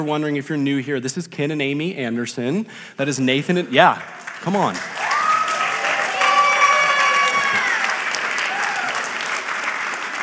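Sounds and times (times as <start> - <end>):
speech: 0.0 - 5.1
audience applause: 3.6 - 10.2
scattered cheers and voices: 4.9 - 9.2.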